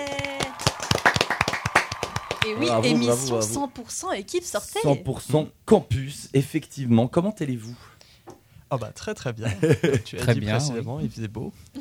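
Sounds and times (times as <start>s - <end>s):
applause: 0.0s - 3.7s
laughter: 2.4s - 3.7s
speech: 2.5s - 7.9s, 8.7s - 11.7s.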